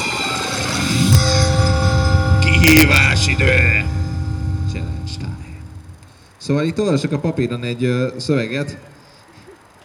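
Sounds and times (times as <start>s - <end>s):
game segment jingle music: 1.0s - 6.1s
speech: 6.5s - 8.9s.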